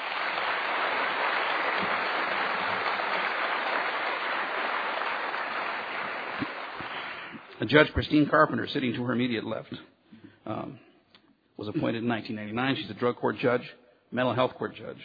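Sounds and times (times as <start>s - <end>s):
audience applause: 0.0s - 7.5s
speech: 7.6s - 9.9s, 10.5s - 10.8s, 11.6s - 15.0s.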